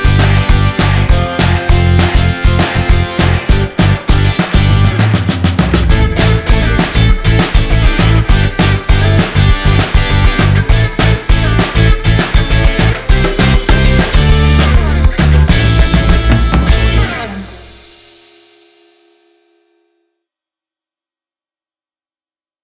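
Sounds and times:
upbeat pop rock: 0.0 - 17.9.

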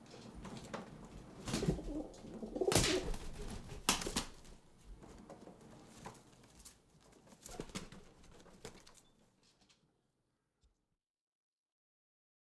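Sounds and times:
pigeons: 0.0 - 9.0.

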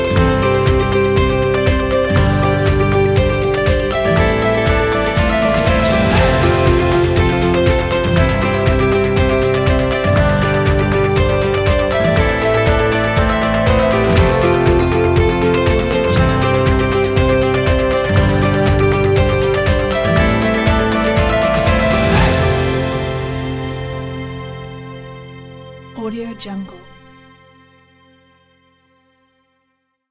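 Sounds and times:
upbeat corporate music: 0.0 - 25.2.

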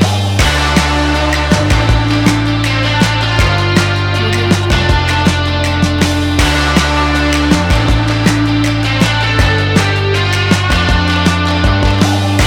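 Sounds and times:
happy rock music: 0.0 - 12.4.

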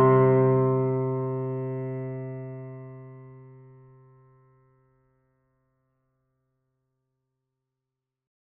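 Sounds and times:
emotional piano music: 0.0 - 4.2.

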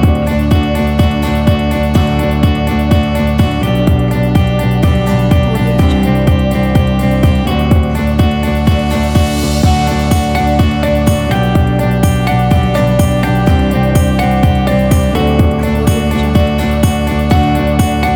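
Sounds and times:
inspiring motivational upbeat uplifting corporate music: 0.0 - 18.1.

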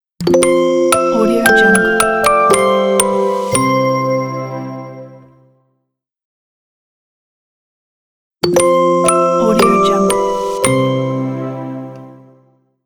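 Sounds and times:
childish ident jingle: 0.5 - 5.1, 9.1 - 11.2.

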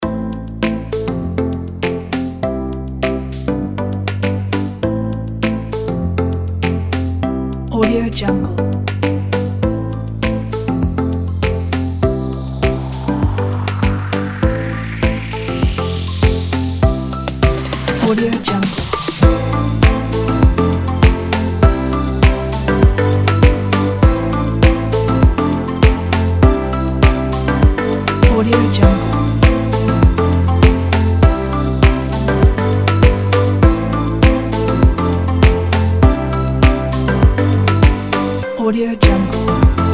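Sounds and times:
tropical house music: 0.1 - 39.9.

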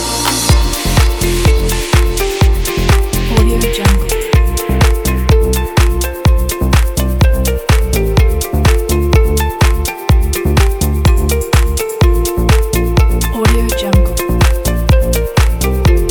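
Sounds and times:
cheerful inspiring upbeat corporate music: 0.0 - 16.0.

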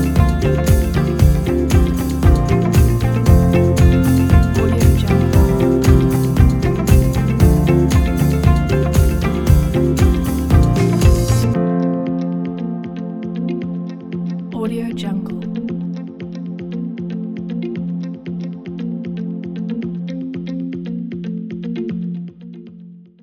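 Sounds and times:
inspiring presentation music: 0.0 - 14.6.

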